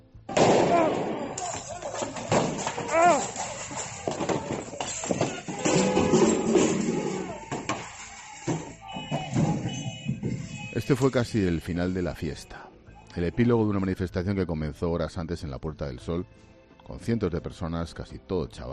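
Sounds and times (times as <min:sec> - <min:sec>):
rioters kicking a fallen police officer: 0:00.3 - 0:10.7
speech: 0:10.9 - 0:12.6, 0:13.2 - 0:18.7.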